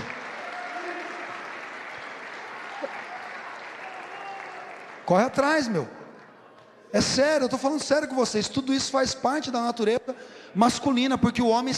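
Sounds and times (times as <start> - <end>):
applause: 0.0 - 6.3
speech: 5.1 - 6.0, 6.9 - 11.7.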